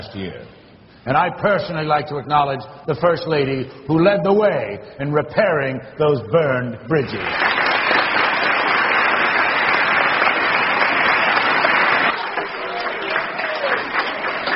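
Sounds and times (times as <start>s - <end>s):
speech: 0.0s - 7.5s
audience applause: 7.2s - 14.5s.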